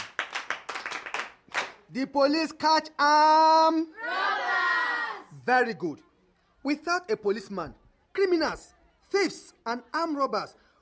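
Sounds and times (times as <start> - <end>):
children clapping: 0.0 - 1.8
speech: 1.9 - 4.2, 5.5 - 10.6.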